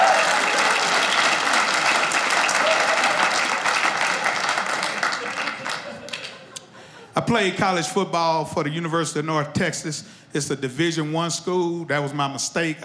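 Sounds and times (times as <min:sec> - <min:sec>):
clapping: 0:00.0 - 0:06.7
laughter: 0:02.6 - 0:07.9
speech: 0:07.2 - 0:12.8.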